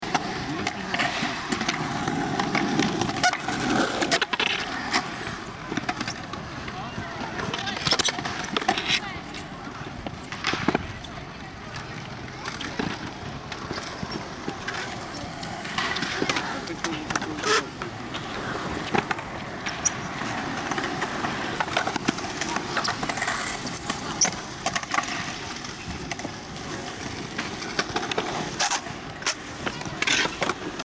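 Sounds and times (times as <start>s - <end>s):
skateboard sounds in an urban park: 0.0s - 30.8s.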